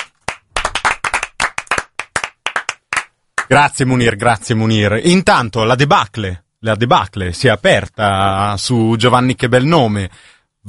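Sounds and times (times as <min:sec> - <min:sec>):
hand clapping: 0:00.0 - 0:03.6
speech: 0:03.5 - 0:10.6.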